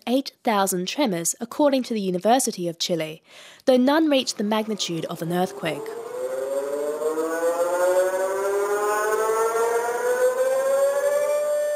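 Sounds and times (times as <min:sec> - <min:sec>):
speech: 0:00.1 - 0:06.0
tsunami warning alarm siren in Chile: 0:04.0 - 0:11.7.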